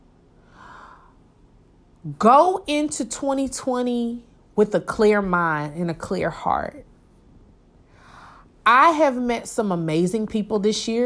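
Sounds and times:
deep breath in: 0.4s - 1.2s, 7.9s - 8.5s
speech: 2.0s - 6.9s, 8.7s - 11.0s.

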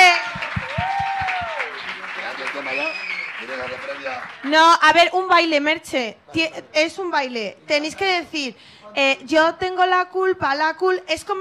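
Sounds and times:
audience applause: 0.0s - 4.9s
speech: 4.5s - 11.4s.

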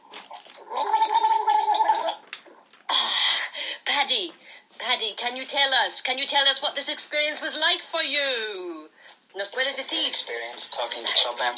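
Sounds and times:
people drinking water from a fountain: 0.0s - 3.3s
speech: 5.0s - 11.5s.

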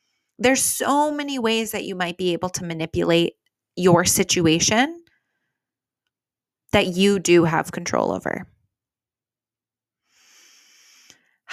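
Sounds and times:
speech: 0.4s - 5.0s, 6.7s - 8.5s
deep breath: 10.0s - 11.4s.

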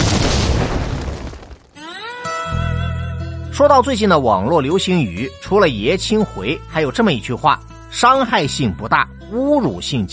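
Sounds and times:
explosion sound effect: 0.0s - 1.8s
speech: 3.6s - 10.1s.

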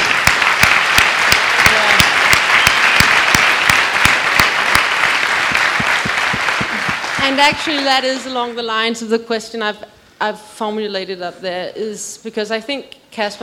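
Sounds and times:
crowd applause: 0.0s - 8.3s
speech: 7.3s - 13.4s.

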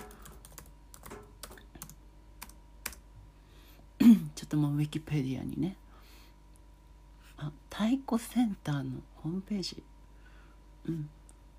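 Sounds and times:
typing on a computer keyboard: 0.0s - 3.0s
speech: 4.1s - 5.8s, 7.8s - 9.9s, 10.9s - 11.2s.

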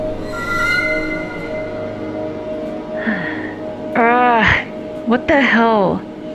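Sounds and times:
train passing without stopping: 0.2s - 3.0s
speech: 5.1s - 6.1s.

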